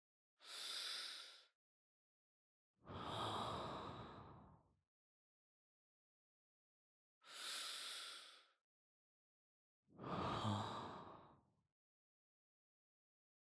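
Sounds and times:
person breathing in sleep: 0.4 - 1.5, 2.9 - 4.6, 7.2 - 8.6, 10.0 - 11.4.

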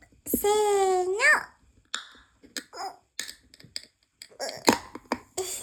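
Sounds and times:
speech: 0.4 - 1.5
drink can pull tab snapping open: 1.9 - 5.3.

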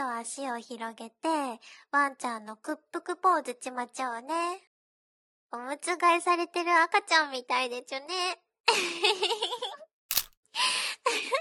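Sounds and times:
speech: 0.0 - 4.7, 5.5 - 9.8
camera shutter click: 10.1 - 10.4.

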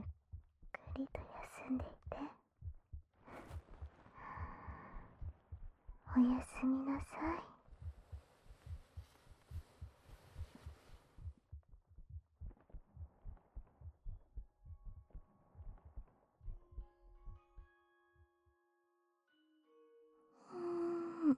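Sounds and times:
heartbeat thumping: 0.0 - 17.4
speech: 1.0 - 2.4, 6.2 - 7.5.

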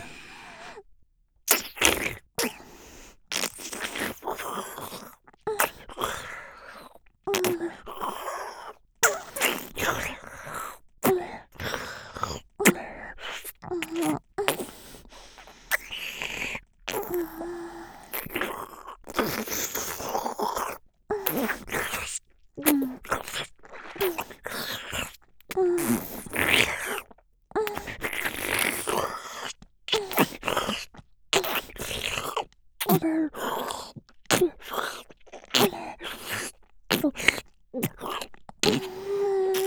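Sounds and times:
stroking oral sex sounds: 1.5 - 39.6.

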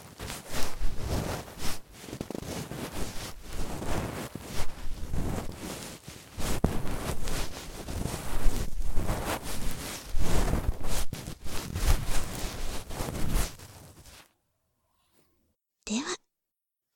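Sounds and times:
ear cleaning recorded with binaural microphone: 0.0 - 14.2
person whispering: 15.9 - 16.2.

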